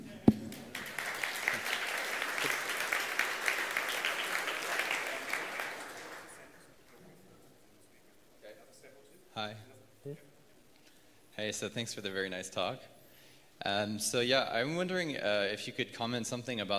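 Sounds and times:
audience applause: 0.0s - 6.7s
speech: 11.5s - 12.9s, 13.6s - 16.7s.

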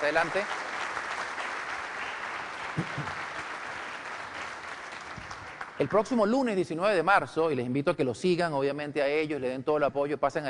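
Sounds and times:
speech: 0.0s - 0.6s, 2.8s - 3.2s, 5.8s - 10.4s
audience applause: 0.0s - 6.2s.

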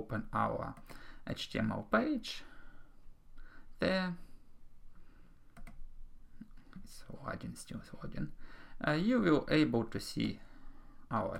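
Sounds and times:
speech: 0.0s - 2.5s, 3.8s - 4.3s, 6.8s - 10.5s, 11.1s - 11.3s
mouse clicks refreshing a page: 5.5s - 5.8s.

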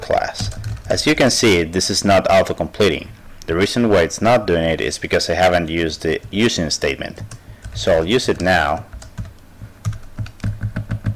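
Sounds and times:
speech: 0.1s - 8.9s
code being typed on a computer keyboard: 0.3s - 1.1s, 7.2s - 11.1s.

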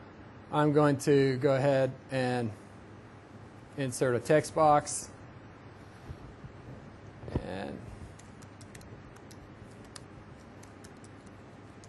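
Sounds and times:
speech: 0.5s - 2.6s, 3.8s - 5.1s
typing on a computer keyboard into a slide's text box: 8.2s - 11.8s.

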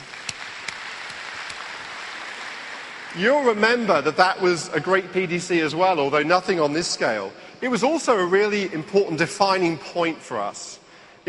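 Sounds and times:
audience applause: 0.0s - 4.2s
speech: 3.1s - 11.2s.

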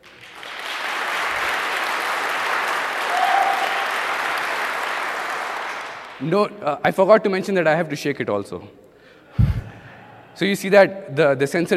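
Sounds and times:
audience clapping very hard: 0.0s - 6.3s
speech: 6.2s - 8.8s, 10.4s - 11.7s.

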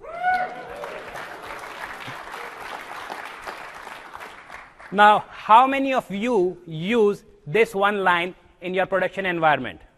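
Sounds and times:
audience applauding: 0.0s - 5.0s
speech: 4.9s - 9.9s.

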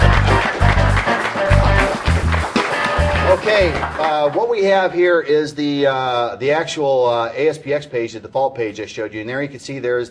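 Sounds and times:
round of applause: 0.0s - 5.0s
speech: 3.5s - 10.1s.

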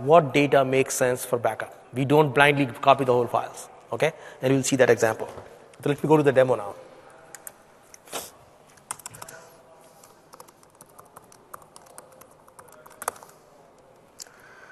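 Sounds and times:
speech: 0.0s - 6.8s
typing a password on a computer keyboard: 8.9s - 9.4s, 10.0s - 13.4s.

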